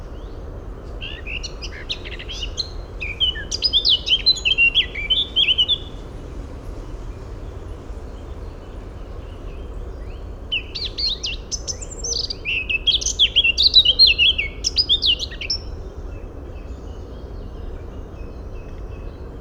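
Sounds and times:
Eurasian blackcap warbling song: 0:01.0 - 0:06.1, 0:09.5 - 0:15.7.

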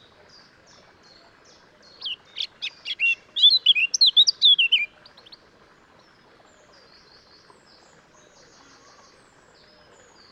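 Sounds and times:
Eurasian blackcap whistling: 0:02.0 - 0:04.9.

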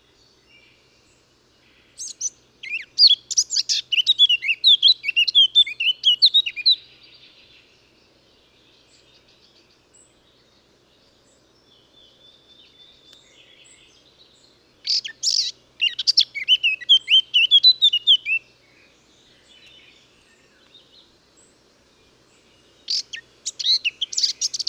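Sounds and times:
Eurasian blackcap (Sylvia atricapilla) singing: 0:02.0 - 0:06.8, 0:14.8 - 0:18.4, 0:22.8 - 0:24.6.

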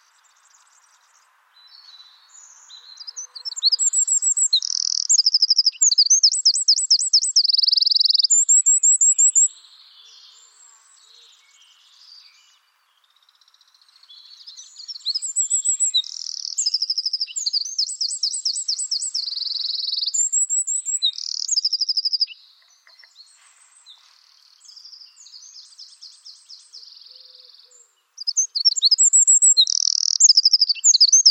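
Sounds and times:
faint bird twittering: 0:00.0 - 0:31.2
Eurasian wren singing: 0:01.8 - 0:12.6, 0:13.3 - 0:23.3, 0:24.5 - 0:31.2.

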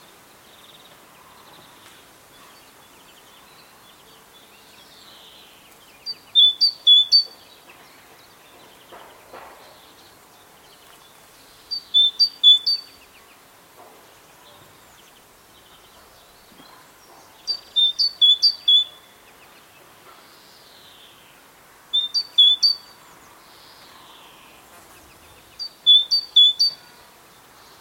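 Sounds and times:
Great tit calling sharp high notes: 0:11.8 - 0:12.9, 0:17.5 - 0:19.0, 0:22.0 - 0:22.9, 0:25.6 - 0:26.8.

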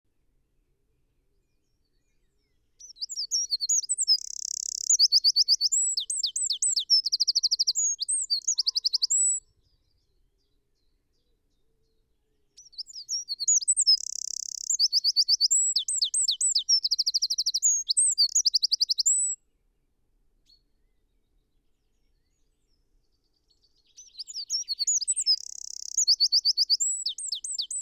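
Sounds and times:
Eurasian wren singing: 0:02.8 - 0:09.4, 0:12.6 - 0:19.4, 0:23.8 - 0:27.7.

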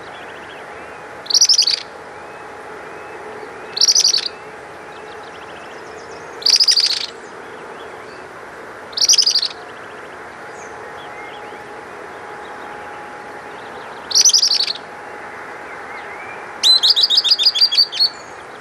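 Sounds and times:
bird calls: 0:00.0 - 0:18.6
steady background hum: 0:00.0 - 0:18.6.

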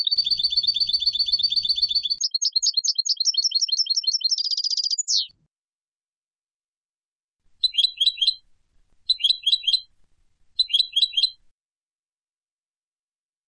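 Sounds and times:
Carduelis carduelis European goldfinch dry rattling trills: 0:00.1 - 0:05.3, 0:07.6 - 0:09.9, 0:10.5 - 0:11.5.

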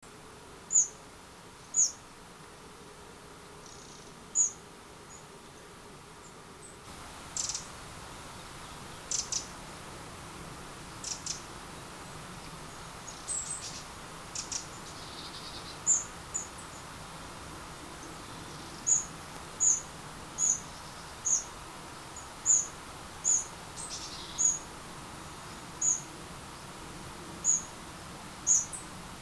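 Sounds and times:
faint steady hiss: 0:00.0 - 0:29.1
Eurasian wren ticking calls: 0:07.3 - 0:07.7, 0:08.4 - 0:09.5, 0:11.0 - 0:11.5, 0:12.7 - 0:16.9, 0:18.4 - 0:21.5, 0:22.2 - 0:24.6, 0:25.8 - 0:26.0.

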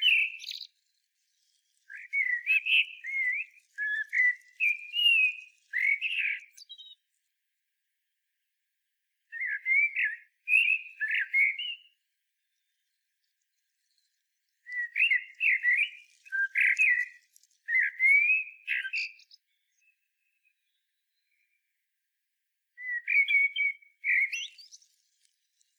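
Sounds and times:
common blackbird singing fluting phrases: 0:00.0 - 0:00.7, 0:01.9 - 0:07.0, 0:09.3 - 0:11.9, 0:14.7 - 0:17.1, 0:17.7 - 0:19.3, 0:22.8 - 0:24.7.

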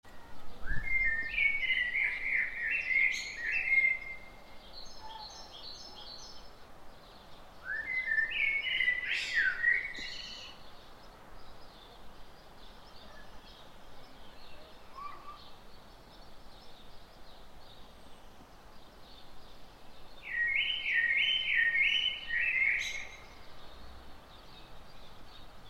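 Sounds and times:
Eurasian blackbird song: 0:00.1 - 0:25.6
steady background hiss: 0:00.1 - 0:25.6.

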